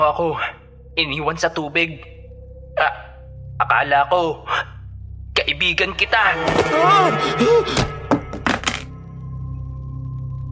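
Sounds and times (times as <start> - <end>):
speech: 0.0 - 2.2, 2.8 - 3.0, 3.7 - 4.7, 5.5 - 7.9
thrown cellphone landing and clattering: 8.1 - 8.9.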